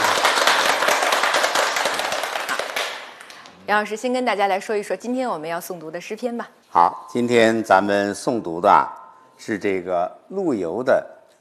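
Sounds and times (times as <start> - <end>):
students applauding to welcome a guest professor: 0.0 - 3.6
speech: 3.7 - 11.3.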